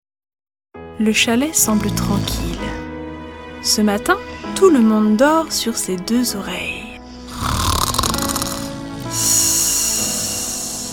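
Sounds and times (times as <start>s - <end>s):
speech: 1.0s - 2.8s, 3.6s - 6.8s
snoring: 1.6s - 2.9s, 7.1s - 10.9s.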